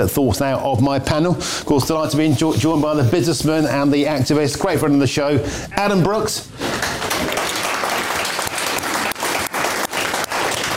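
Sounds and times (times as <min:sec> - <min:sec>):
speech: 0:00.0 - 0:06.7
studio audience applause: 0:06.6 - 0:10.7.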